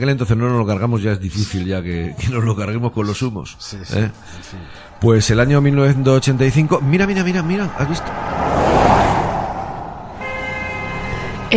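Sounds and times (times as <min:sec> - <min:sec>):
speech: 0:00.0 - 0:08.9
road noise of a 1985 Opel Kadett GSI overtaking on the road: 0:04.2 - 0:11.4.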